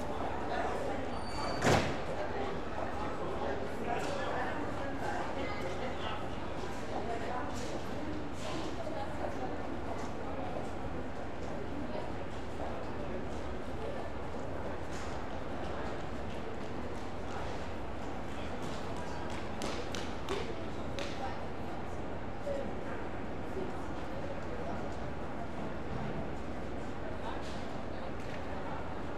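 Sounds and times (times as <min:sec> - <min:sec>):
trains at a through station in Germany: 0:00.0 - 0:29.1.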